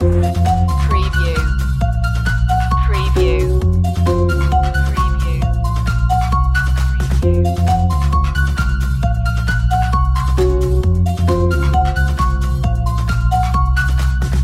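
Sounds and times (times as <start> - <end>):
energetic playground music loop: 0.0 - 14.4.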